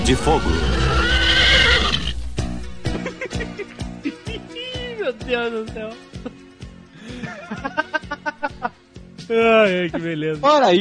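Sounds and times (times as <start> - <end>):
speech: 0.1 - 0.8, 5.3 - 6.1, 7.3 - 10.8
horse neighing: 0.2 - 2.2
laughter: 2.9 - 4.5, 7.0 - 8.8.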